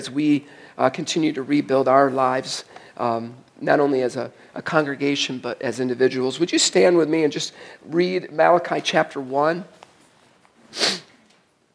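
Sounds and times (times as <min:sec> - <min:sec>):
speech: 0:00.0 - 0:09.8
quick breathy sniff: 0:10.6 - 0:11.2.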